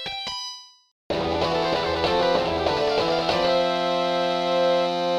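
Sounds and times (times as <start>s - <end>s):
extended arpeggios: 1.1s - 5.0s.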